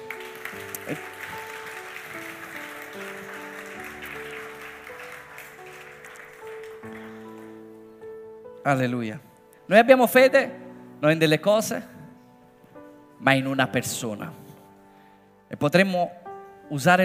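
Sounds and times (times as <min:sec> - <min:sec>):
audience applauding: 0:00.0 - 0:07.9
speech: 0:00.9 - 0:01.1, 0:08.7 - 0:11.9, 0:13.2 - 0:14.4, 0:15.5 - 0:17.0.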